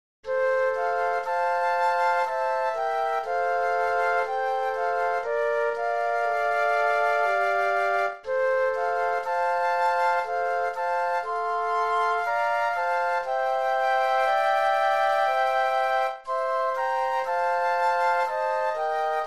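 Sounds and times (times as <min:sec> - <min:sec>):
flute trio playing: 0:00.2 - 0:19.2.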